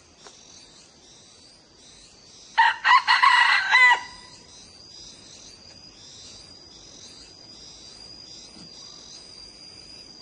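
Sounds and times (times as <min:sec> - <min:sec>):
insect whine: 0:00.0 - 0:10.2
Red junglefowl crowing: 0:02.6 - 0:04.4.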